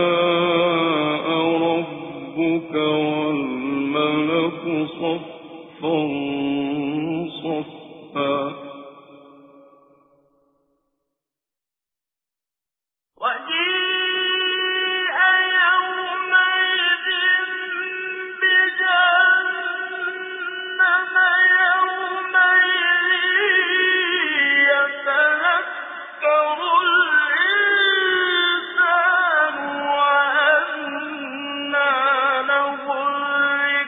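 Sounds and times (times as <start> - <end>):
Quran recitation with tajweed: 0.0 - 9.9, 13.2 - 33.8.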